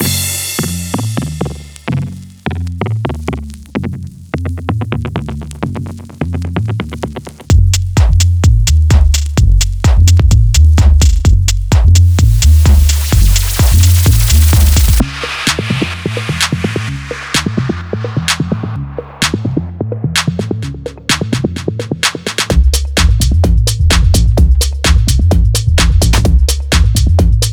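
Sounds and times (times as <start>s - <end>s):
bass: 0.0s - 27.5s.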